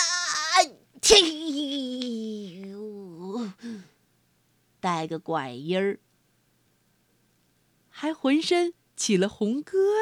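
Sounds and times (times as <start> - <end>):
voice imitating a long loud sneeze: 0.0 - 3.6
speech: 0.6 - 1.7, 4.8 - 6.0, 8.0 - 10.0.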